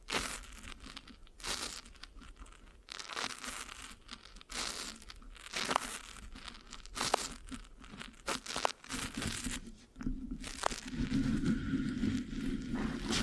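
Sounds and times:
sticky crinkly microphone scratching: 0:00.0 - 0:13.2
steady lower rubbing: 0:09.8 - 0:13.2.

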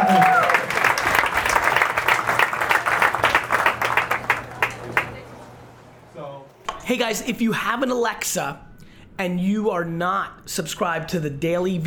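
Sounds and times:
audience applause: 0:00.0 - 0:05.2
speech: 0:06.9 - 0:08.6, 0:09.2 - 0:11.8.

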